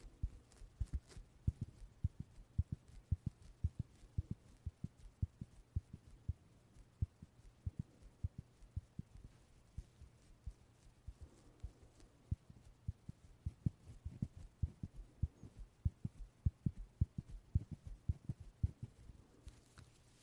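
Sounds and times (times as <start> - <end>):
soft low puffs: 0.0 - 20.2
steady low hum: 0.0 - 20.2.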